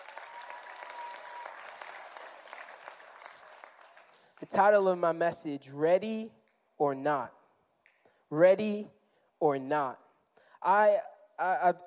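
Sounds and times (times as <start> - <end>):
audience applause: 0.0 - 4.4
speech: 4.4 - 7.4, 8.3 - 10.0, 10.6 - 11.8.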